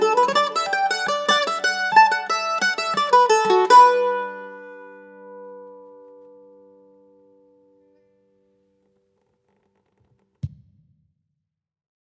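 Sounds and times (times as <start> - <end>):
mandolin: 0.0 - 8.4.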